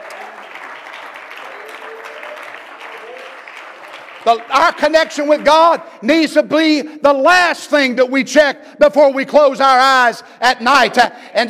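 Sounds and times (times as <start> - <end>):
audience clapping hands: 0.0 - 6.0
speech: 4.2 - 11.4.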